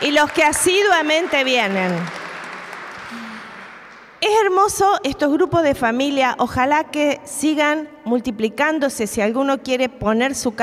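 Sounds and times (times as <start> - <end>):
audience applause: 0.0 - 4.2
speech: 0.1 - 2.2, 4.2 - 10.6.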